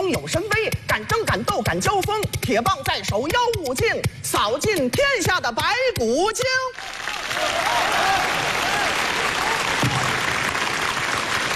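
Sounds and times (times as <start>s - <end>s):
speech: 0.1s - 10.2s
audience applause: 6.8s - 11.5s.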